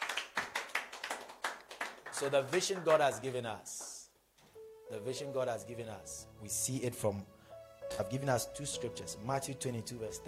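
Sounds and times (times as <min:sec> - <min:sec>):
audience clapping: 0:00.0 - 0:04.1
speech: 0:02.2 - 0:03.8, 0:04.9 - 0:10.2.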